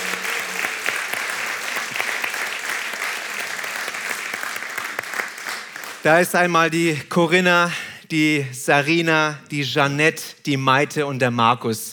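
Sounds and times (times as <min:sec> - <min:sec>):
audience applause: 0:00.0 - 0:06.2
speech: 0:06.0 - 0:11.9.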